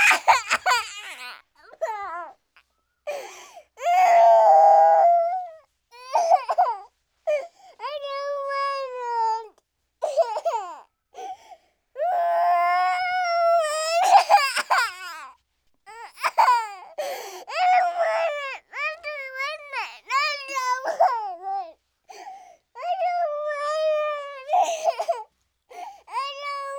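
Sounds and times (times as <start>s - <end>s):
small child crying: 0.0s - 2.4s, 3.1s - 10.9s, 12.0s - 22.2s, 22.8s - 25.3s, 26.0s - 26.7s.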